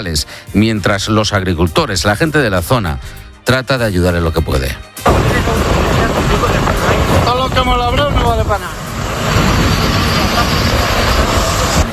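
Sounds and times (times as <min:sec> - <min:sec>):
speech: 0:00.0 - 0:06.7, 0:07.5 - 0:08.8
engines of a column of tractors cutting firebreaks against a wildfire: 0:05.1 - 0:11.9.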